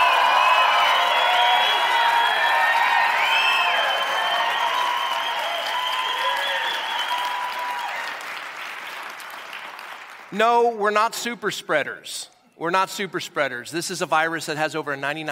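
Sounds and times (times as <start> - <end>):
crowd cheering and whooping at a live-streamed show: 0.0 - 8.5
audience applauding at a live-streamed show: 0.0 - 10.4
speech: 10.3 - 15.3.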